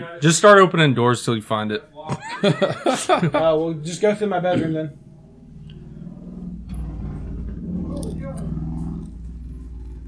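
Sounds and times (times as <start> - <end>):
speech: 0.1 - 5.0
laughter: 2.0 - 3.9
motorcycle passing by: 3.4 - 10.0.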